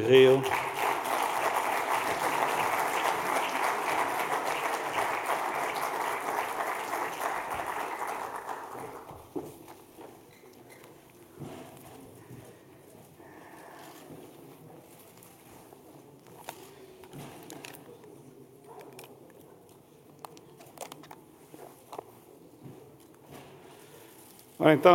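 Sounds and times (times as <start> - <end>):
speech: 0.0 - 0.6, 24.7 - 24.9
audience applause: 0.0 - 9.3.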